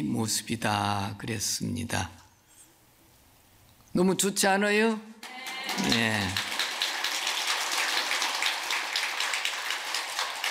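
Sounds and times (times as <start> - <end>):
speech: 0.0 - 2.2, 4.0 - 6.5
audience applause: 5.2 - 10.4.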